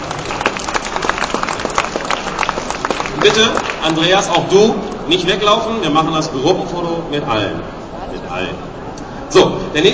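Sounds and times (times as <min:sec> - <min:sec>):
audience applause: 0:00.0 - 0:04.4
speech: 0:03.2 - 0:09.9.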